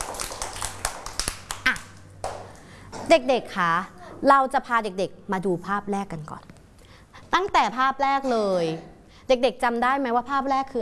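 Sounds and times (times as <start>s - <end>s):
children clapping for a classmate: 0.0s - 2.7s
speech: 3.1s - 6.5s, 7.3s - 10.8s.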